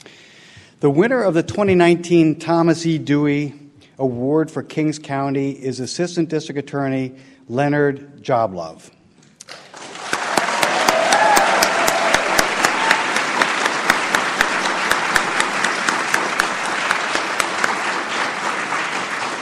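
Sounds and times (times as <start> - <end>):
speech: 0.8 - 9.6
audience applause: 9.5 - 19.3.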